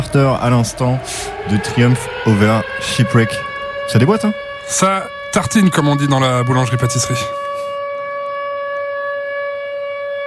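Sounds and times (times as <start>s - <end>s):
speech: 0.0s - 7.4s
ominous alarm siren: 0.0s - 10.2s.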